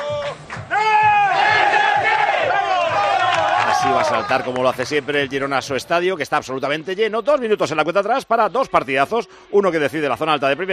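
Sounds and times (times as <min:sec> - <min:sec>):
stadium crowd chanting battle cry in Girona: 0:00.7 - 0:04.0
speech: 0:03.9 - 0:10.7.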